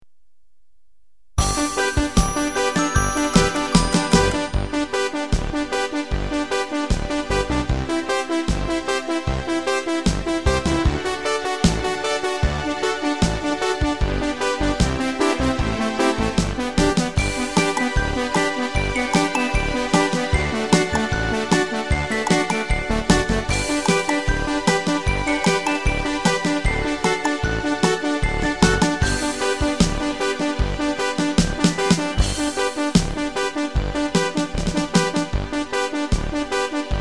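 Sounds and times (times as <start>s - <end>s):
instrumental music: 1.4s - 36.9s.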